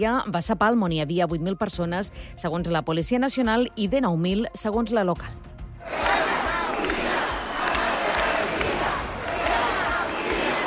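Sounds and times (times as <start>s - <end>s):
speech: 0.0s - 6.0s
protest crowd shouting and chanting: 5.8s - 10.6s.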